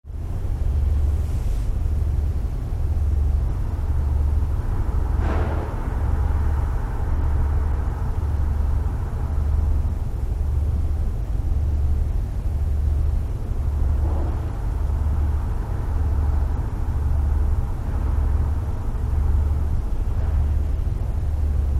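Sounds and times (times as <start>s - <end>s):
large ferry car deck vibrations: 0.1s - 21.7s.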